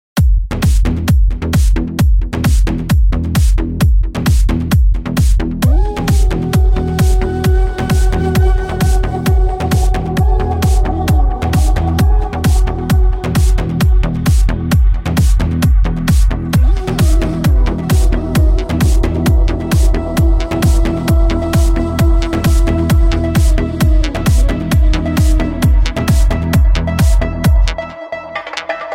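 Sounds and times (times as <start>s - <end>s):
groovy music: 0.2s - 28.9s.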